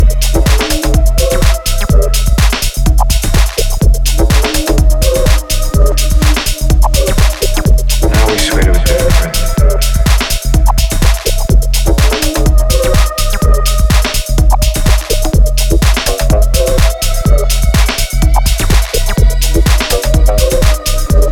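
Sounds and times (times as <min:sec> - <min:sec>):
industrial rhythm: 0:00.0 - 0:21.3.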